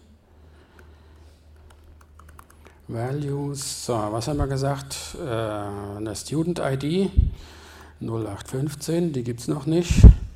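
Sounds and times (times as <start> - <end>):
low steady hum: 0.0 - 10.3
typing an SQL insert statement on a computer keyboard: 1.6 - 2.6
speech: 2.9 - 10.2.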